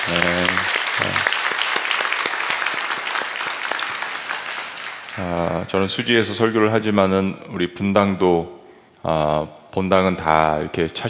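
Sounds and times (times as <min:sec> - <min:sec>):
audience applause: 0:00.0 - 0:05.6
speech: 0:00.1 - 0:01.3, 0:05.2 - 0:11.0.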